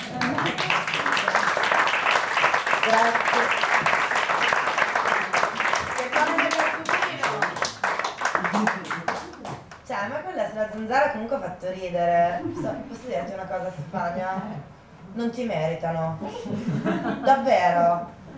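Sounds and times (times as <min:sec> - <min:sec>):
audience applause: 0:00.0 - 0:09.8
speech: 0:02.9 - 0:03.6, 0:10.8 - 0:18.2.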